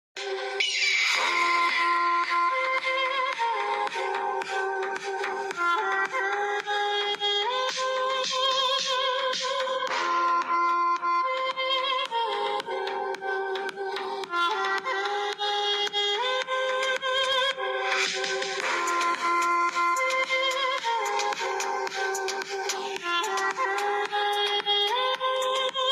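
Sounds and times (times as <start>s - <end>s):
slow reverb Punjabi lofi remix ringtone: 0.2s - 25.9s.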